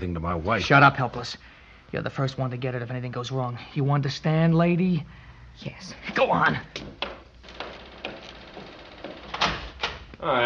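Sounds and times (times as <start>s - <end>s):
speech: 0.0s - 7.2s, 10.2s - 10.4s
knocking on a door: 6.7s - 9.8s.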